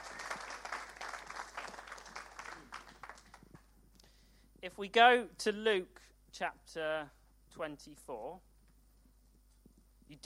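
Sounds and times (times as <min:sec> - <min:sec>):
round of applause: 0:00.0 - 0:03.7
speech: 0:04.8 - 0:08.5.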